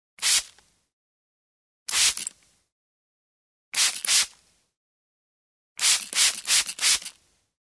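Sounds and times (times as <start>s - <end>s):
barbershop spray bottle spraying: 0.2s - 0.6s, 1.9s - 2.3s, 3.8s - 4.4s, 5.8s - 7.2s.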